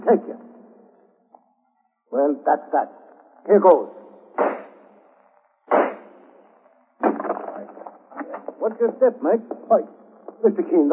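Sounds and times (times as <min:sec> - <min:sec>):
speech: 0:00.1 - 0:00.4, 0:02.1 - 0:04.0, 0:08.7 - 0:10.9
gunshots blasting off a door lock in a radio drama: 0:04.4 - 0:04.8, 0:05.7 - 0:06.2.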